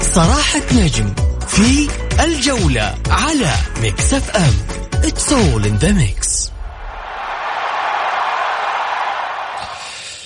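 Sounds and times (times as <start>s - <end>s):
speech: 0.1s - 6.5s
played recording of stadium crowd: 6.5s - 10.2s.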